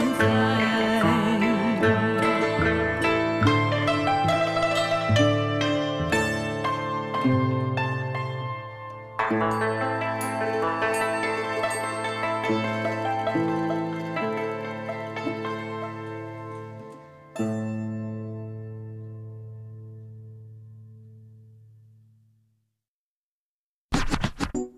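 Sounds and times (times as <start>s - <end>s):
traditional Chinese music: 0.0s - 19.1s.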